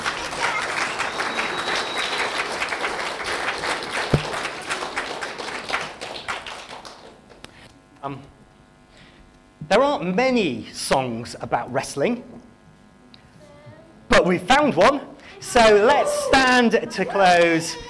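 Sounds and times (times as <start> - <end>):
audience applause: 0.0 - 7.4, 17.0 - 17.8
speech: 9.7 - 12.5, 14.2 - 17.8.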